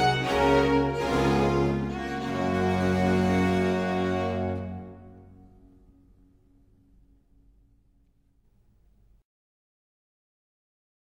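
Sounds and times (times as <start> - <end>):
concerto grosso allegro in G major: 0.0 - 5.4.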